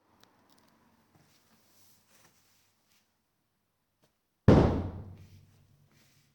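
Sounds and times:
impact thud: 0:04.5 - 0:05.3.

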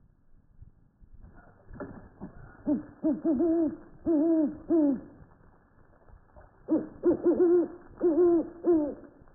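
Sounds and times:
Great Horned Owl hooting: 0:02.6 - 0:05.2, 0:06.7 - 0:09.2.

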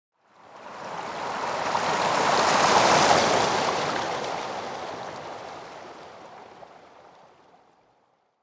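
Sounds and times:
waves: 0:00.2 - 0:08.4.

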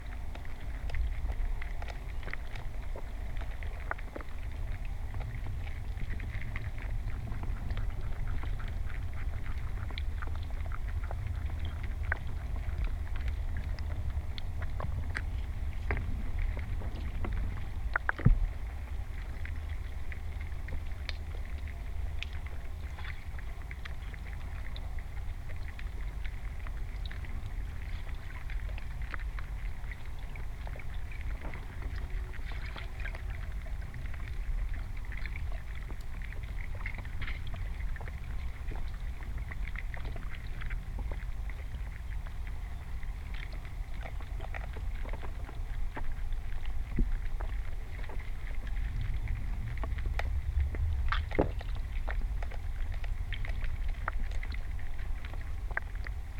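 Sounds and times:
great pond snail recorded by hydrophone: 0:00.0 - 0:56.3.

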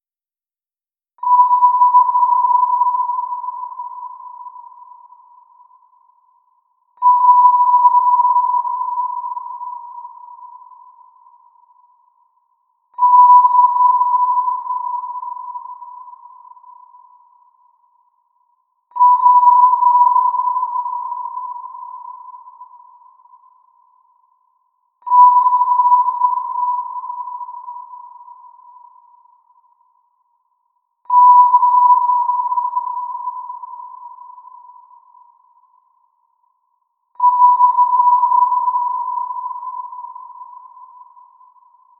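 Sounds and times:
wide sonar ping: 0:01.2 - 0:41.9.

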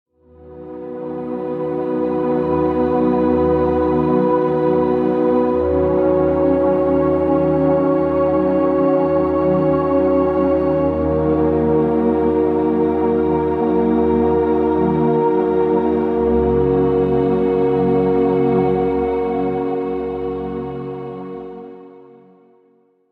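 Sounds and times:
ethereal ambient music: 0:00.2 - 0:22.6.

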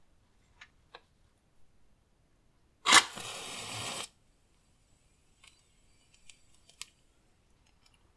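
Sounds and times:
match striking: 0:02.9 - 0:04.1.

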